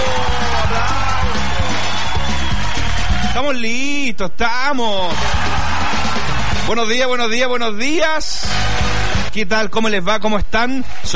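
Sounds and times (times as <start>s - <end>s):
applause: 0.0s - 3.6s, 5.0s - 7.3s, 8.4s - 9.4s
speech: 3.4s - 5.8s, 6.7s - 11.1s.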